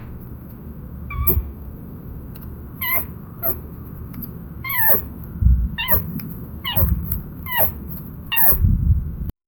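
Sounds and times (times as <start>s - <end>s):
happy contented rat sounds: 1.1s - 1.8s, 2.4s - 8.6s.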